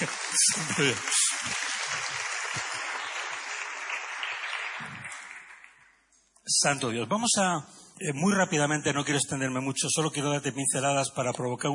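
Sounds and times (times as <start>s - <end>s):
speech: 0.0s - 1.6s, 6.6s - 11.7s
church audience applause: 0.0s - 5.9s.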